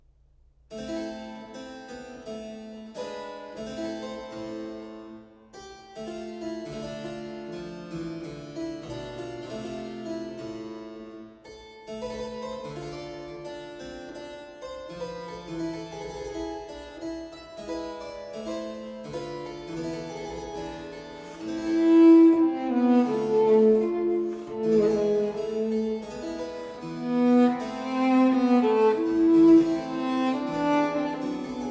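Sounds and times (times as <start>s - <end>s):
slow cello and piano sonata movement: 21.2s - 31.6s.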